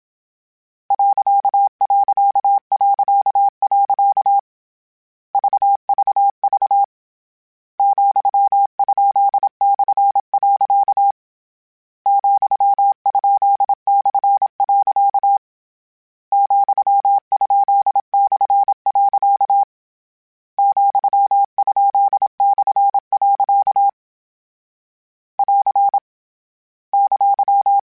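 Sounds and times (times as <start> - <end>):
Morse code CW code groups: 0.9 - 4.4, 5.4 - 6.9, 7.8 - 11.2, 12.1 - 15.4, 16.3 - 19.7, 20.6 - 23.9, 25.4 - 26.0, 27.0 - 27.8.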